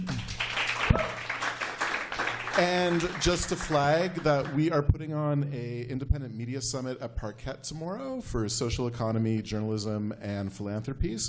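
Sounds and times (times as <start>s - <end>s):
audience applause for a discussion panel: 0.0s - 4.8s
speech: 2.6s - 11.2s.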